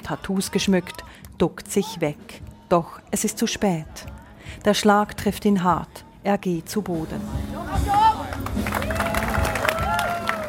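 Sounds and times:
speech: 0.1s - 8.0s
audience cheering and clapping: 7.9s - 10.4s.

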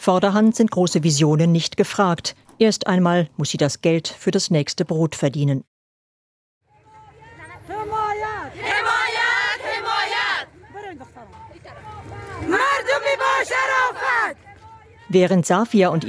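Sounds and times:
speech: 0.0s - 5.7s, 15.1s - 16.0s
protest crowd shouting a chant: 7.8s - 10.6s, 11.9s - 14.4s.

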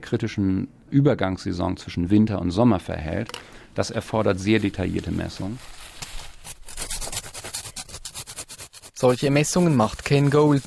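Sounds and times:
speech: 0.1s - 5.9s, 9.0s - 10.6s
ice core pieces being cut and filed for a radio-wave measuring device: 4.7s - 10.6s.

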